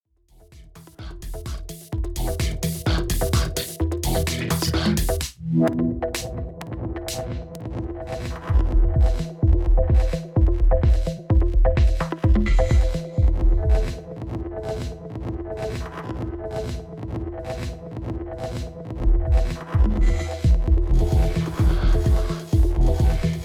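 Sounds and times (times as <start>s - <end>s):
Denon DJ X1800 mixer reverb effect: 1.0s - 14.3s, 19.0s - 23.4s.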